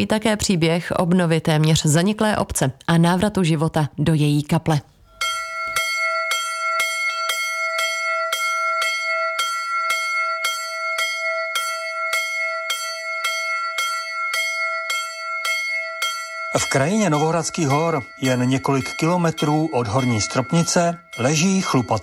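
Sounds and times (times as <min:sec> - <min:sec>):
speech: 0:00.0 - 0:04.9, 0:16.6 - 0:22.0
small chapel bell ringing: 0:05.1 - 0:22.0.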